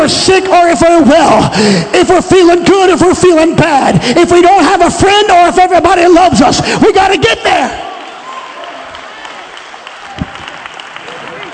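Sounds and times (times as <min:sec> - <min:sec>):
speech: 0:00.3 - 0:07.9
audience clapping hands: 0:07.9 - 0:11.5.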